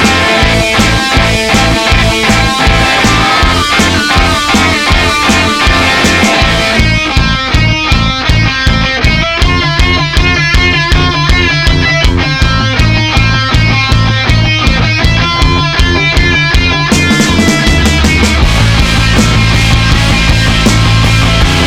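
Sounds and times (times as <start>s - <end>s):
energetic confident indie rock music: 0.0s - 21.6s.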